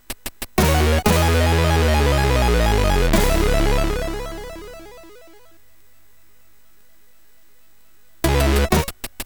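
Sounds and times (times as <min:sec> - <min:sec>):
MOS6581 chiptune jingles: 0:00.6 - 0:05.4, 0:08.3 - 0:08.9.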